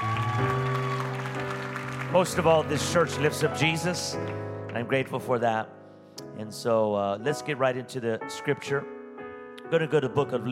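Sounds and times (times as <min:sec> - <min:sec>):
audience applause: 0:00.0 - 0:03.3
speech: 0:02.1 - 0:05.8, 0:06.4 - 0:09.0, 0:09.7 - 0:10.5.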